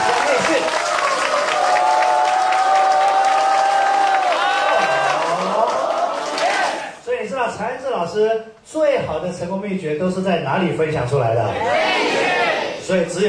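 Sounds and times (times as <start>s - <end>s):
audience applause: 0.0s - 7.0s
speech: 7.8s - 13.2s.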